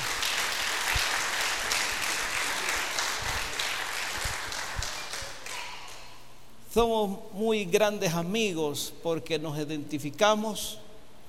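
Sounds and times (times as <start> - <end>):
audience applause: 0.0 - 6.0
speech: 6.8 - 10.8.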